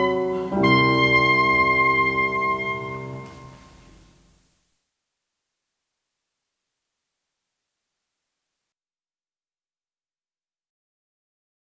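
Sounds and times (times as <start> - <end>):
oboe: 0.0 - 4.0
piano: 0.0 - 4.3.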